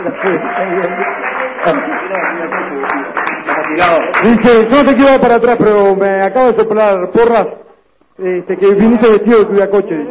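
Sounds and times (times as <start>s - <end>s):
audience applause: 0.0s - 4.8s
speech: 0.2s - 7.6s, 8.2s - 10.1s.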